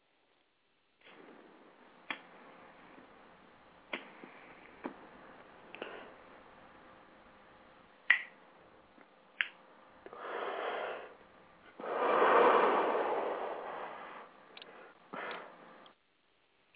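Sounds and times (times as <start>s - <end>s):
Zippo lighter lit, rushing hiss-like swells: 10.1s - 15.9s.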